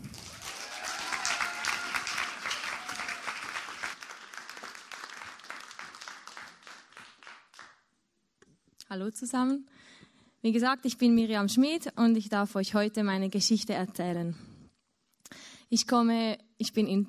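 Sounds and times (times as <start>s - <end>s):
audience applause: 0.0s - 7.8s
speech: 8.9s - 9.7s, 10.4s - 14.5s, 15.7s - 17.0s.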